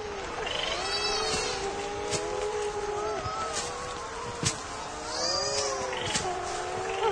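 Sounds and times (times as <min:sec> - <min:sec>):
nesting seabirds calling raucously at night: 0:00.0 - 0:07.1.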